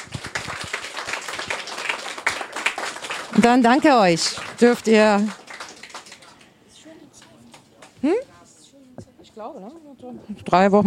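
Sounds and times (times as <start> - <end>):
audience applause at a youth hackathon event: 0.0 - 8.0
speech: 3.3 - 5.4, 9.4 - 10.8.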